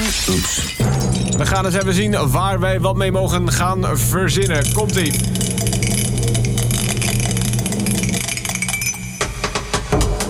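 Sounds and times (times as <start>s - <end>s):
speech: 0.2s - 5.8s
die spinning and rattling: 4.2s - 10.2s.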